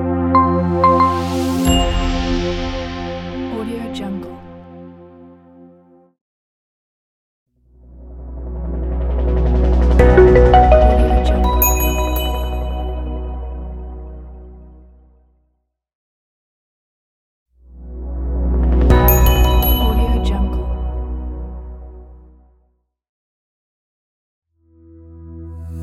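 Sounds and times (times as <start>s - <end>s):
flat logo jingle: 0.2s - 3.4s, 9.1s - 14.0s, 18.7s - 21.4s.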